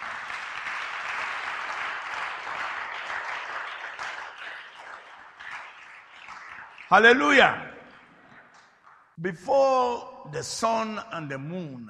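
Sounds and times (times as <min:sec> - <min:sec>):
audience clapping: 0:00.0 - 0:09.2
speech: 0:06.9 - 0:07.7, 0:09.2 - 0:11.8.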